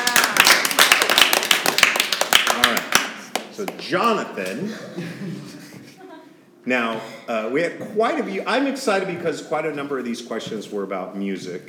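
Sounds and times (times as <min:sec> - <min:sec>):
audience applause at a live event: 0:00.0 - 0:03.4
speech: 0:03.6 - 0:05.6, 0:06.6 - 0:11.6.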